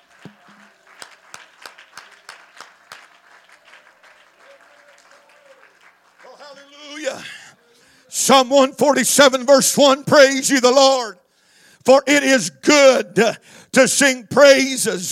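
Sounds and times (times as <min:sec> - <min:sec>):
audience clapping hands: 0:00.0 - 0:07.4
speech: 0:07.1 - 0:07.4, 0:08.3 - 0:11.2, 0:11.9 - 0:15.1.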